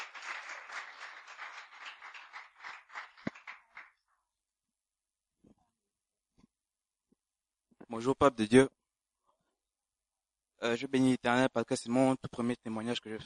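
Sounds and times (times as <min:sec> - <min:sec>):
audience applauding: 0:00.0 - 0:04.0
speech: 0:07.9 - 0:08.8, 0:10.7 - 0:13.2.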